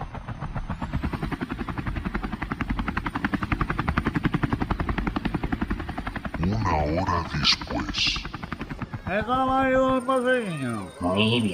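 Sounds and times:
helicopter lifting off: 0:00.0 - 0:11.5
speech: 0:06.8 - 0:08.3, 0:09.1 - 0:11.5.

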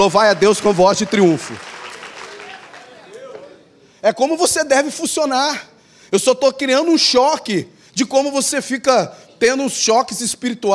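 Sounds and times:
speech: 0:00.0 - 0:01.7, 0:04.0 - 0:10.7
audience applause: 0:00.0 - 0:03.6.

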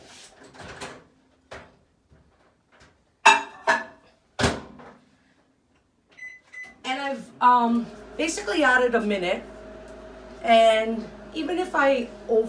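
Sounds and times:
microwave running: 0:06.1 - 0:12.4
speech: 0:07.1 - 0:09.5, 0:10.4 - 0:12.4.

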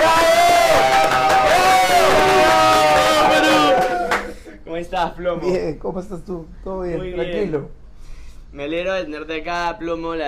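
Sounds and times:
audience applause: 0:00.0 - 0:04.4
speech: 0:04.9 - 0:07.8, 0:08.5 - 0:10.2.

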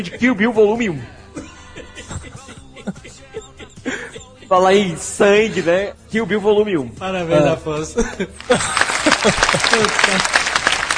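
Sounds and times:
speech: 0:00.0 - 0:01.2, 0:04.5 - 0:10.6
laughter: 0:01.4 - 0:05.8, 0:07.9 - 0:10.9
applause sound effect with echo: 0:08.4 - 0:10.9.

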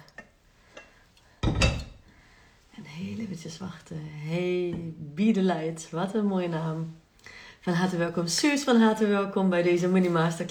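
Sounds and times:
crockery clinking: 0:00.0 - 0:02.0
speech: 0:03.4 - 0:07.0, 0:07.6 - 0:10.4.

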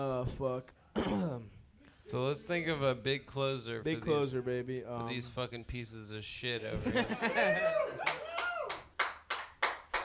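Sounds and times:
speech: 0:00.0 - 0:07.8
laughter: 0:06.8 - 0:08.0
rhythmic audience clapping at a live comedy show: 0:08.0 - 0:10.0.

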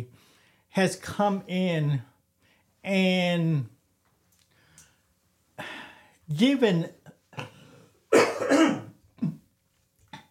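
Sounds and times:
speech: 0:00.7 - 0:02.1, 0:02.8 - 0:03.8, 0:05.6 - 0:07.5
coughing: 0:07.0 - 0:09.5
throat clearing: 0:07.3 - 0:09.5.

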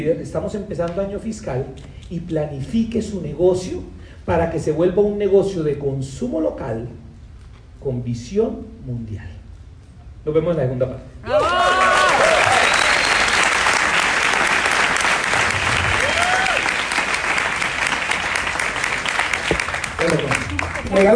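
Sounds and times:
speech: 0:00.0 - 0:07.0, 0:07.8 - 0:09.4, 0:10.2 - 0:11.8
audience applause: 0:11.3 - 0:21.1.

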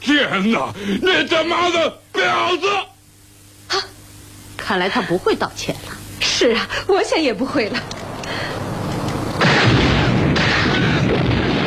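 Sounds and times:
speech: 0:00.2 - 0:02.9, 0:03.7 - 0:03.9, 0:04.7 - 0:08.5
tanker truck explosion: 0:09.3 - 0:11.6.

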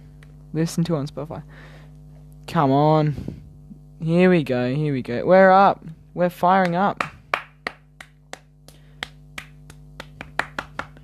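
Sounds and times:
low hum: 0:00.0 - 0:11.0
speech: 0:00.5 - 0:01.8, 0:02.5 - 0:03.4, 0:04.0 - 0:07.1
sharp hand claps: 0:06.6 - 0:11.0.

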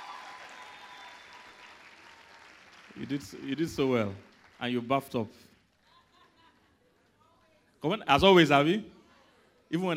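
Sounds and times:
audience clapping: 0:00.0 - 0:05.9
speech: 0:03.0 - 0:05.5, 0:07.8 - 0:09.0, 0:09.7 - 0:09.9.

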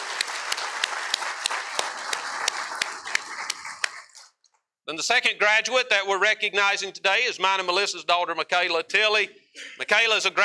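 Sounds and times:
audience applauding: 0:00.0 - 0:04.4
sharp evenly timed clap: 0:00.0 - 0:04.4
speech: 0:04.9 - 0:10.4.

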